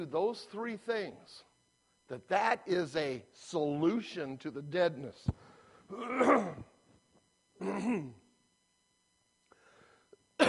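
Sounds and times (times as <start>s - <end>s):
speech: 0.0s - 1.5s, 2.1s - 6.7s, 7.6s - 8.2s
person coughing: 5.9s - 6.7s, 7.6s - 8.2s
throat clearing: 5.9s - 6.7s, 7.6s - 8.2s.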